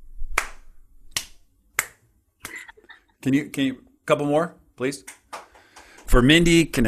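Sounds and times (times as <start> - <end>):
slow clapping: 0.4 - 2.6, 5.1 - 6.1
speech: 3.2 - 5.2, 6.1 - 6.8.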